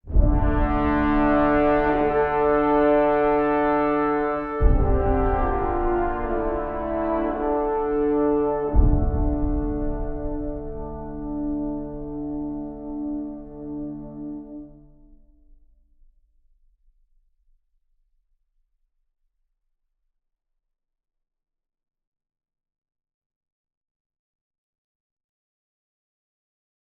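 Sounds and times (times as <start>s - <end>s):
interlude fanfare: 0.1s - 14.8s.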